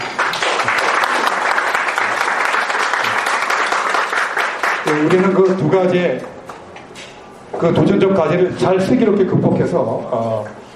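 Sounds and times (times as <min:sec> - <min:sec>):
audience applause: 0:00.0 - 0:05.5
speech: 0:04.9 - 0:06.3, 0:07.6 - 0:10.6.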